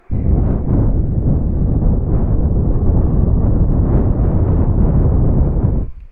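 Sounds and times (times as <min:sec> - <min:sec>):
wind: 0:00.0 - 0:06.1.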